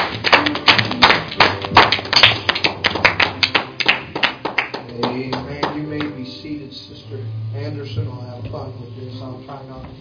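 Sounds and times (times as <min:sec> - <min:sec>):
audience hand clapping: 0:00.0 - 0:06.2.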